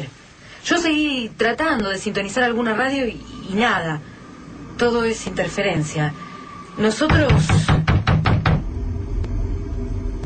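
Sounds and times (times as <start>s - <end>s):
low steady rumble: 0.0s - 7.5s, 8.4s - 10.2s
speech: 0.8s - 4.1s, 4.8s - 6.2s, 6.8s - 7.7s
heavy rapid knocks on a door: 7.1s - 8.6s.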